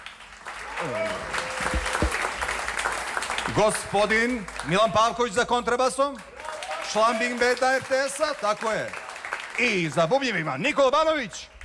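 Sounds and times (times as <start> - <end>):
audience applauding jazz trio musicians: 0.0 - 4.8, 6.4 - 10.0
speech: 0.8 - 1.1, 3.6 - 6.3, 6.9 - 9.0, 9.6 - 11.5.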